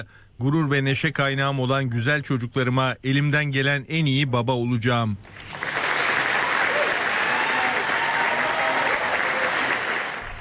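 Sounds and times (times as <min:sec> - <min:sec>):
speech: 0:00.0 - 0:05.7
applause after UK Prime Minister Keir Starmer's resignation speech: 0:05.3 - 0:10.4.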